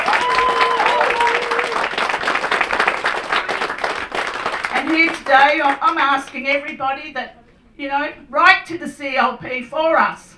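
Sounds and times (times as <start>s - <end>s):
whistles and cheers: 0.0s - 2.0s
crowd applause: 0.0s - 5.9s
speech: 5.3s - 10.3s.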